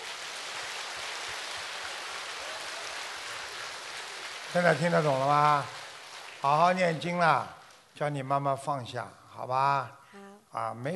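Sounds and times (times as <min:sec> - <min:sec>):
applause: 0:00.0 - 0:07.9
speech: 0:04.5 - 0:05.8, 0:06.4 - 0:10.9.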